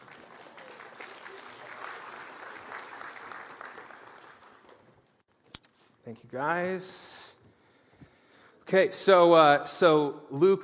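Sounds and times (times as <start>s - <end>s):
audience applauding: 0.0s - 5.2s
speech: 6.1s - 7.1s, 8.7s - 10.6s.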